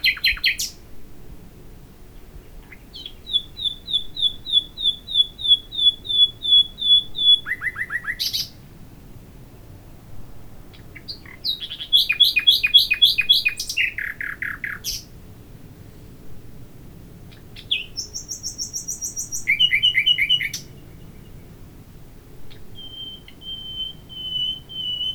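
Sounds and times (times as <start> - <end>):
common nightingale Luscinia megarhynchos singing: 0.0 - 0.8, 2.3 - 8.7, 10.7 - 15.2, 17.3 - 21.7, 22.5 - 25.1.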